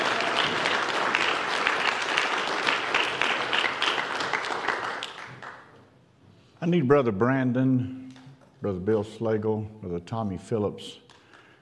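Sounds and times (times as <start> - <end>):
audience clapping for the choir: 0.0 - 5.9
speech: 6.6 - 8.0, 8.6 - 11.0.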